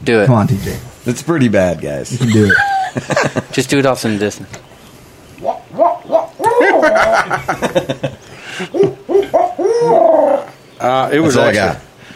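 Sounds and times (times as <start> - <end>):
speech: 0.0 - 4.6, 7.0 - 8.9, 10.8 - 11.8
laughter: 2.1 - 4.3, 6.4 - 9.5
man's voice imitating owl hoots: 5.4 - 7.3, 8.5 - 10.6.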